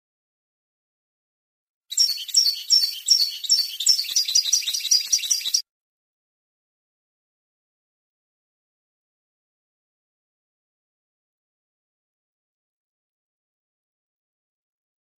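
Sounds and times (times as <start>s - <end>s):
European goldfinch song: 1.9s - 5.6s.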